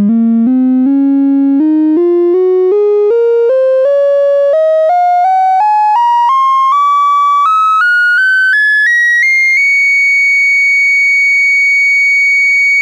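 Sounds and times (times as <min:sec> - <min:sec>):
sine tone: 0:00.1 - 0:12.8.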